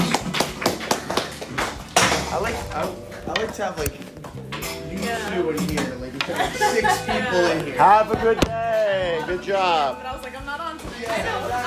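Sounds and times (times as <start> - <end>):
round of applause: 0.0 - 1.8
speech: 2.4 - 11.6
laughter: 6.2 - 9.0.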